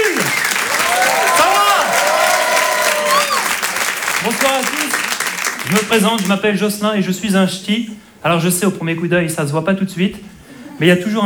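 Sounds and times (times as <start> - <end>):
audience applause and cheering at a comedy festival show: 0.0 - 6.3
speech: 5.7 - 11.2.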